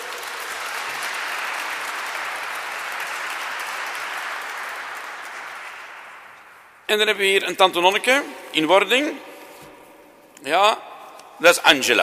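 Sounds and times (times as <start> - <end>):
audience applause: 0.0 - 6.9
speech: 6.9 - 9.3, 10.4 - 12.0.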